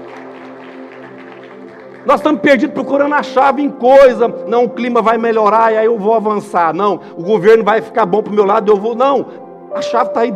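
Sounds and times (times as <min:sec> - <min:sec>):
applause: 0:00.0 - 0:02.8
speech: 0:02.0 - 0:10.3.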